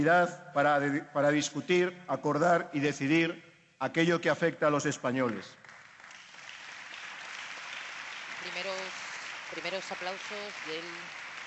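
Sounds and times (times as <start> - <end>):
speech: 0.0 - 5.6, 8.5 - 11.2
applause: 5.1 - 11.4.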